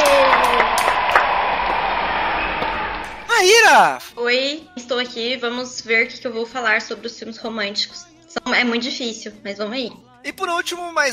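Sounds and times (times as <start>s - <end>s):
applause for a guest: 0.0s - 4.1s
speech: 3.4s - 11.1s.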